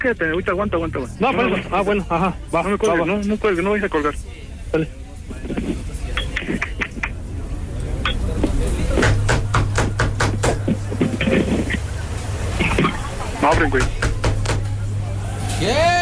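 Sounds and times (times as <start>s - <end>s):
speech: 0.0s - 5.6s, 13.6s - 14.0s
low steady hum: 0.0s - 15.2s
knocking on a door: 9.0s - 10.8s.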